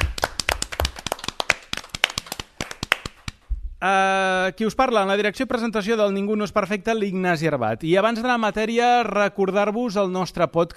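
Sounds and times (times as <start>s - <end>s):
audience applause: 0.0s - 3.4s
speech: 3.8s - 10.7s.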